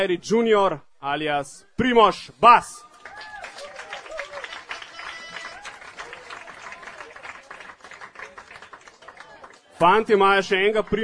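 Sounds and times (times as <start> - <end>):
speech: 0.0 - 3.3, 9.8 - 11.0
crowd applauding: 2.9 - 9.8.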